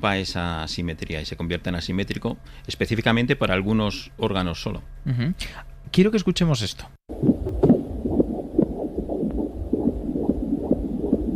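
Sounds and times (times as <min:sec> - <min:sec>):
speech: 0:00.0 - 0:07.2
fetal heartbeat on ultrasound: 0:07.1 - 0:11.3.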